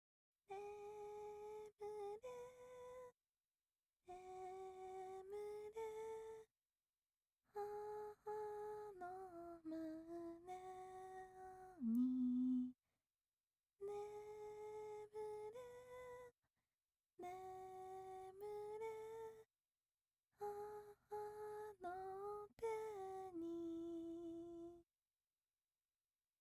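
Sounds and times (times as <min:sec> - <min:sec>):
lullaby: 0:00.5 - 0:03.2, 0:04.0 - 0:06.5, 0:07.5 - 0:12.8, 0:13.8 - 0:16.4, 0:17.2 - 0:19.5, 0:20.3 - 0:24.9.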